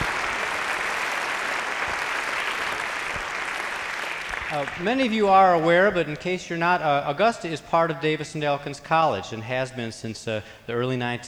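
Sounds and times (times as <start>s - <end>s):
crowd applauding: 0.0s - 5.6s
speech: 4.5s - 11.2s.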